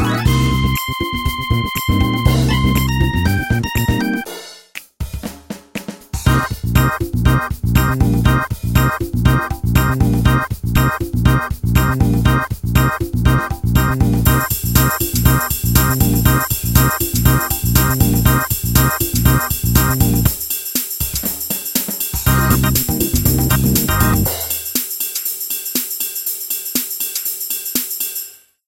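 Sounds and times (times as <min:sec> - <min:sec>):
synthesizer factory preset sounds: 0:00.0 - 0:04.2, 0:06.3 - 0:20.2, 0:22.3 - 0:24.6.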